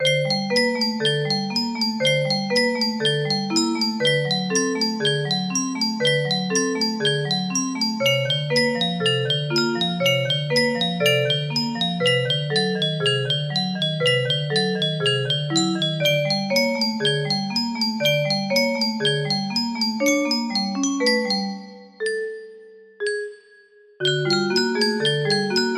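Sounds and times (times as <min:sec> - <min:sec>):
music box melody: 0:00.0 - 0:25.7.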